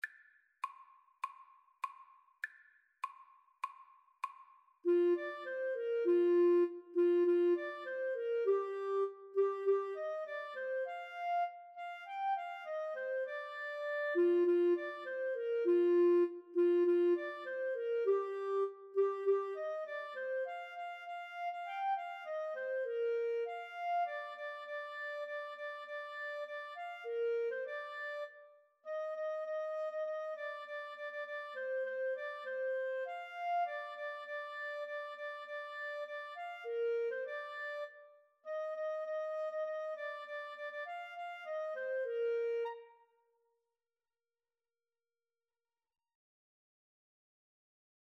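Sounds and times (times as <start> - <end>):
saxophone: 4.8 - 43.1
clarinet: 4.8 - 43.3.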